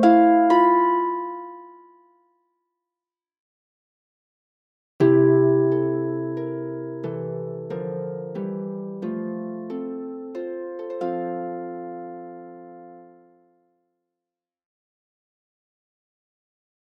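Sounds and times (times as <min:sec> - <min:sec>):
harp folk songs: 0:00.0 - 0:01.9, 0:05.0 - 0:13.4.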